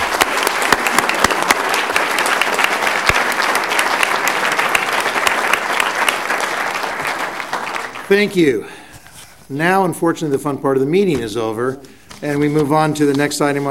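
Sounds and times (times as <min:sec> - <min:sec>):
audience applause: 0:00.0 - 0:08.4
speech: 0:08.1 - 0:08.8, 0:09.5 - 0:13.6.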